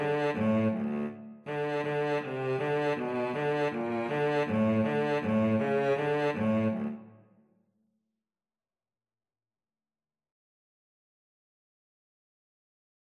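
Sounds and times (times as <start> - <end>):
cello duet: 0.0 - 7.1.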